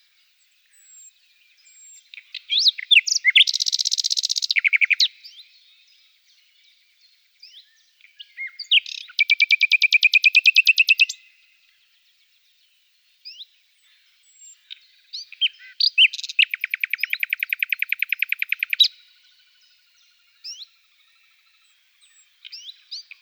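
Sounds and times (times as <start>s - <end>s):
common nightingale singing: 0.0s - 11.4s, 13.2s - 23.2s.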